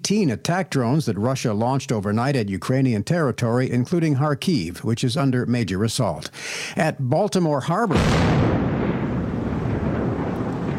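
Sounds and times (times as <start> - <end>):
speech: 0.1 - 8.5
controlled demolition blast of Francis Scott Key Bridge segment in Baltimore Harbor: 7.9 - 10.7.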